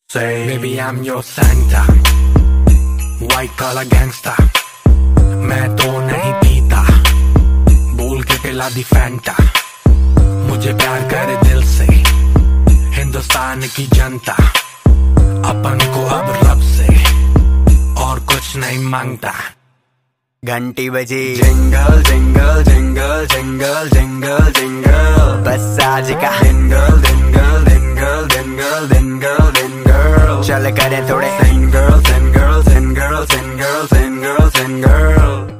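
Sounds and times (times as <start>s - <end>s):
Christmas song ringtone: 0.3s - 18.8s, 21.4s - 35.5s.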